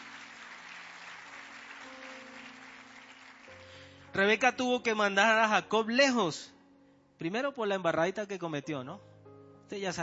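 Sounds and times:
audience applause: 0.0s - 3.8s
speech: 4.2s - 6.6s, 7.2s - 9.1s, 9.7s - 10.0s.

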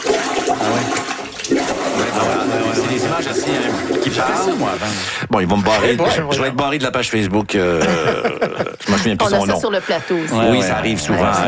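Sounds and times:
water backing up and gurgling in a toilet bowl during heavy rain: 0.0s - 5.0s
speech: 3.0s - 11.4s
laughter: 7.6s - 11.4s.

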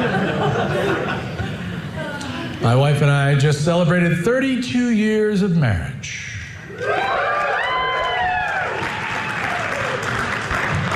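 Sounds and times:
laughter: 0.0s - 2.7s
speech: 2.6s - 6.2s
whoops and cheers: 6.7s - 10.2s
audience applause: 6.8s - 10.9s.

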